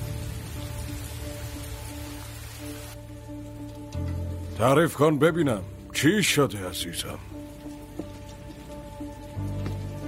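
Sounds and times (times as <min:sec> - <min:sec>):
steady rain falling: 0:00.0 - 0:10.0
speech: 0:04.6 - 0:07.3.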